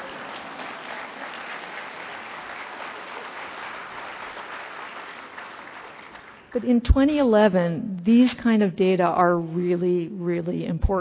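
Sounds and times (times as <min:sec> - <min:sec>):
audience applause: 0:00.0 - 0:06.5
speech: 0:06.5 - 0:11.0.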